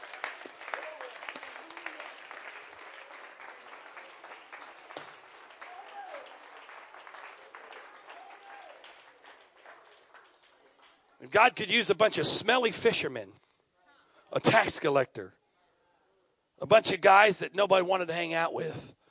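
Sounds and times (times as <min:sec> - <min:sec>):
audience clapping hands: 0:00.0 - 0:11.9
speech: 0:11.2 - 0:13.4, 0:14.3 - 0:15.4, 0:16.6 - 0:19.0.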